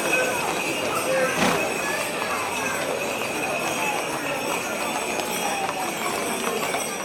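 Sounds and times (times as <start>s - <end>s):
horses' hooves clip-clopping in a procession: 0.0s - 7.0s.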